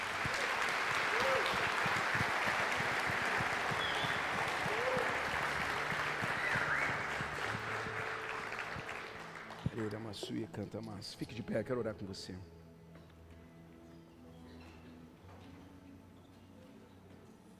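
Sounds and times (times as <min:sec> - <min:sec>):
applause: 0:00.0 - 0:10.3
speech: 0:10.1 - 0:12.6.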